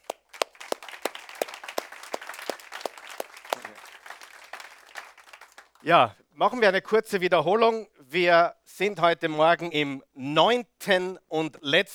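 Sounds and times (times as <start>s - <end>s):
audience applause: 0.0s - 5.9s
speech: 5.8s - 11.9s.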